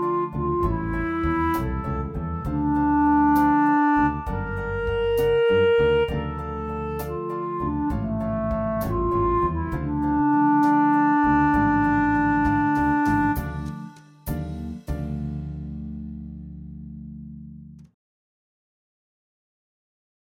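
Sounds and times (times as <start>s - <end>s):
karaoke instrumental: 0.0s - 15.0s.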